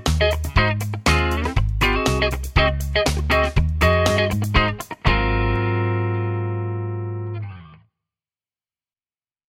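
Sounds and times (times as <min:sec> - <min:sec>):
Telecaster electric guitar with clean neck pickup: 0:00.0 - 0:07.9.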